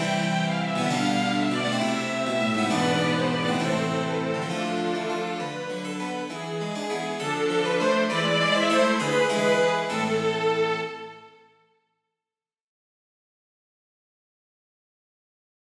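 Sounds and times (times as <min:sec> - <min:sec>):
gigue for string quartet with harpsichord: 0:00.0 - 0:11.3.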